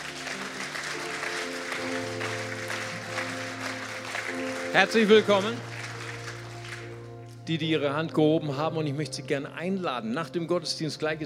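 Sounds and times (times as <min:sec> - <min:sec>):
audience applause: 0:00.0 - 0:07.2
speech: 0:04.7 - 0:05.7, 0:07.5 - 0:11.2.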